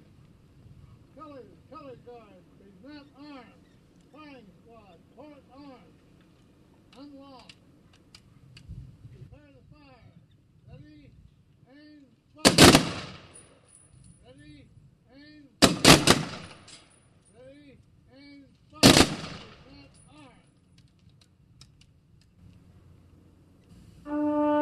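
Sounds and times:
faint voices calling commands: 0:01.0 - 0:07.7, 0:09.2 - 0:12.8, 0:17.3 - 0:20.6
firing party rifle volley salute for the fallen: 0:12.4 - 0:13.6, 0:15.6 - 0:17.0, 0:18.8 - 0:19.8.

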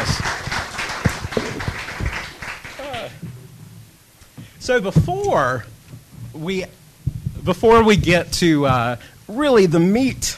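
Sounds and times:
audience applause: 0:00.0 - 0:03.2
speech: 0:04.7 - 0:05.7, 0:06.3 - 0:06.8, 0:07.4 - 0:10.3.

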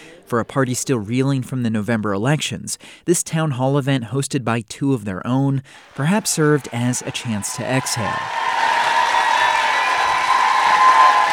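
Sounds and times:
speech: 0:00.3 - 0:08.8
audience applause at town hall: 0:05.8 - 0:11.3.

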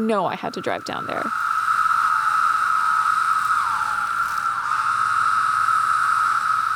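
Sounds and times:
speech: 0:00.0 - 0:01.6
periodical cicada brood chorus: 0:00.0 - 0:06.7.

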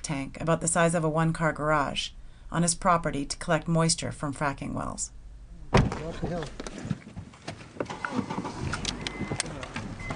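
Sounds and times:
speech: 0:00.1 - 0:05.2, 0:06.0 - 0:06.9
car door shutting with a heavy thunk: 0:05.7 - 0:07.0, 0:07.8 - 0:10.1.

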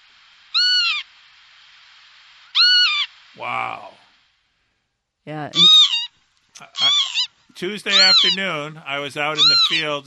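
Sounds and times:
northern lapwing call: 0:00.5 - 0:01.1, 0:02.5 - 0:04.0, 0:05.5 - 0:10.0
speech: 0:03.4 - 0:04.0, 0:05.2 - 0:05.8, 0:06.6 - 0:10.0.

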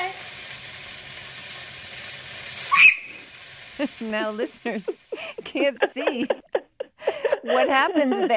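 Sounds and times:
chicken frying in hot oil: 0:00.0 - 0:06.4
high whistling squeal: 0:02.6 - 0:03.3
speech: 0:03.8 - 0:06.5, 0:07.4 - 0:08.3
laughter: 0:03.8 - 0:08.3.

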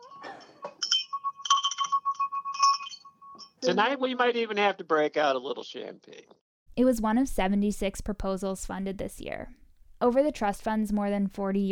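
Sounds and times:
small bell ringing: 0:00.0 - 0:03.8
speech: 0:03.6 - 0:11.6.

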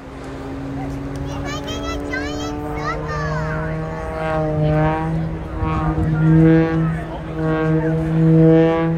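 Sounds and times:
aerobatic plane propeller droning while tumbling: 0:00.0 - 0:08.9
child's excited voice: 0:01.2 - 0:04.2.

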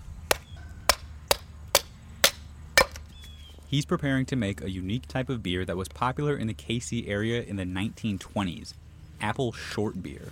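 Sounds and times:
firewood being chopped: 0:00.3 - 0:03.1
speech: 0:03.7 - 0:10.3.

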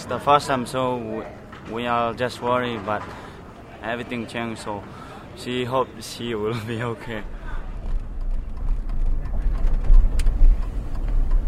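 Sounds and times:
speech: 0:00.0 - 0:07.4
car engine and road rumble: 0:06.6 - 0:11.4.

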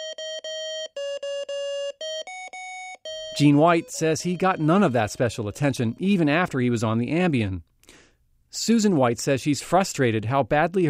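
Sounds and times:
hospital bed fall-prevention alarm beeping: 0:00.0 - 0:06.4
speech: 0:03.4 - 0:10.8.

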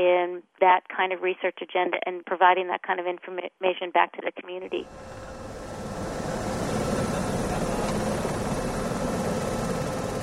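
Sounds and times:
speech: 0:00.0 - 0:05.6
medical emergency helicopter on a hospital rooftop revving up for takeoff: 0:04.8 - 0:10.2.

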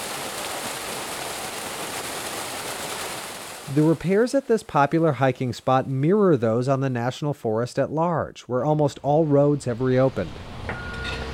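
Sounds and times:
Morgan Falls waterfall flowing gently over rock face: 0:00.0 - 0:05.2
speech: 0:03.7 - 0:10.5.

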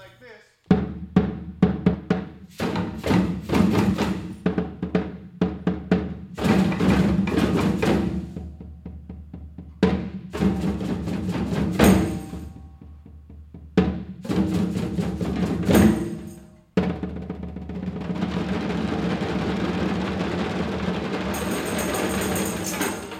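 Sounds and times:
percussion blocks: 0:00.0 - 0:23.1
djembe drumming in a call and response: 0:00.7 - 0:23.1
tambourines: 0:10.4 - 0:12.8, 0:14.6 - 0:16.7, 0:20.7 - 0:23.1
bells: 0:11.8 - 0:12.7, 0:21.0 - 0:23.1.

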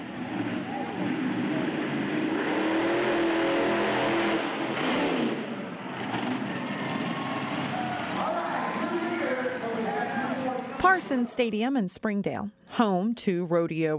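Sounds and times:
monster truck engines revving at a Monster Truck Racing Super Series show in Springdale: 0:00.0 - 0:10.8
speech: 0:11.0 - 0:13.9.

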